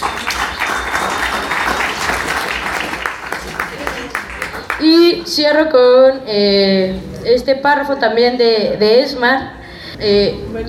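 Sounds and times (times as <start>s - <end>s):
audience applause: 0.0s - 4.9s
murmur of voices: 0.0s - 10.6s
speech: 4.8s - 10.6s.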